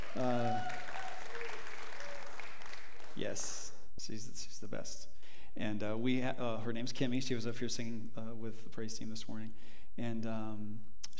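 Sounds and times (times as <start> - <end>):
person whooping: 0.0 - 2.4
room full of people clapping: 0.0 - 3.7
speech: 0.2 - 0.6, 3.2 - 11.1.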